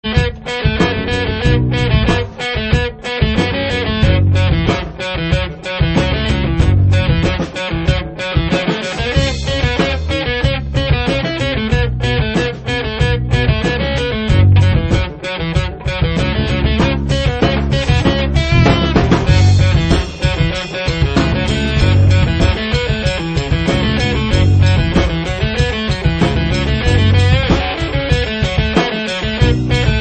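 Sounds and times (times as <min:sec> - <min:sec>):
rock trio playing: 0:00.0 - 0:29.9.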